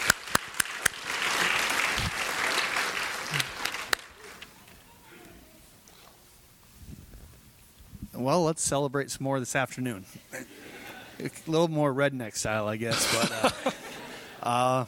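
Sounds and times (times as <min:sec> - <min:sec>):
audience applause: 0:00.0 - 0:04.5
speech: 0:08.2 - 0:10.5, 0:11.2 - 0:14.8
laughter: 0:12.9 - 0:14.6.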